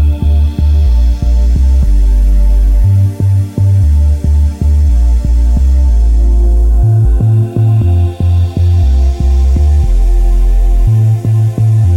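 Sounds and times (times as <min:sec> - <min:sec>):
deep bass synth pad in E: 0:00.0 - 0:11.9.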